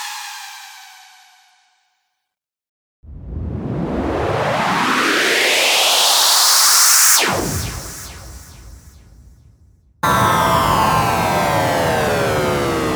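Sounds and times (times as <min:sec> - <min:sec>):
EDM sound effect: 0:03.1 - 0:09.2, 0:10.0 - 0:12.9.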